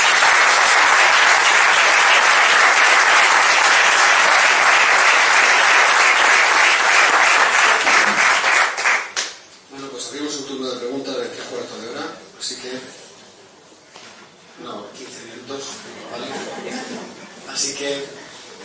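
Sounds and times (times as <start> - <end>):
audience applause: 0.0 - 9.4
laughter: 15.9 - 17.5.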